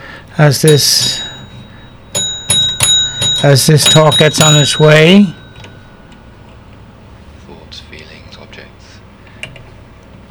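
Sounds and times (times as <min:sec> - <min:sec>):
speech: 0:00.4 - 0:01.3, 0:03.4 - 0:05.4
bell rung to begin a meditation talk: 0:00.5 - 0:06.6.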